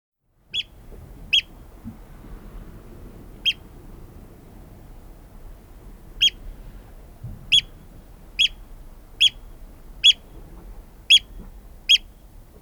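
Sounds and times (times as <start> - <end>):
Eurasian oystercatcher piping calls: 0.5 - 1.6, 3.4 - 3.6, 6.2 - 6.4, 7.5 - 10.3, 11.1 - 11.3, 11.9 - 12.6.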